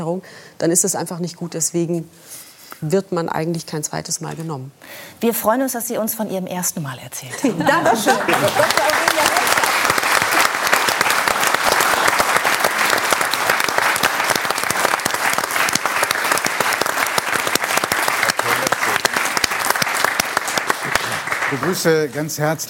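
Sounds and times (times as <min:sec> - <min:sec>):
speech: 0:00.0 - 0:09.4, 0:21.5 - 0:22.6
laughter: 0:07.4 - 0:09.5
audience applause: 0:07.7 - 0:22.3.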